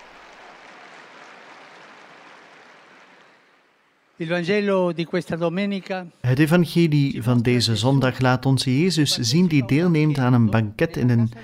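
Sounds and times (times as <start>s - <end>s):
audience applause: 0.0s - 4.2s
speech: 4.2s - 11.4s.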